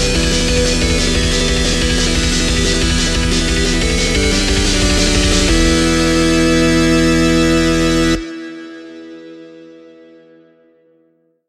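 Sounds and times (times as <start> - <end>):
8-bit music: 0.0 - 8.6.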